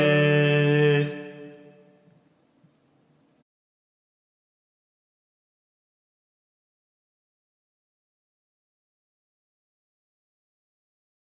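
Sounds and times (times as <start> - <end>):
alto voices singing a guide part of a sacred choral piece: 0.0 - 2.0.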